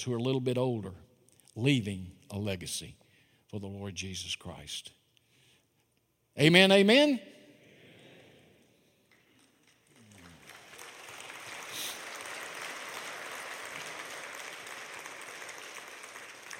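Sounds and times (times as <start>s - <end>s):
speech: 0.0s - 5.0s, 6.4s - 7.4s
crowd clapping: 9.1s - 16.5s.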